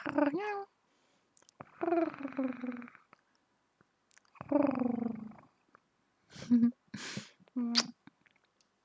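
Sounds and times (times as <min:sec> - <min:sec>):
purring: 0:00.0 - 0:00.6, 0:01.6 - 0:03.2, 0:04.3 - 0:05.6.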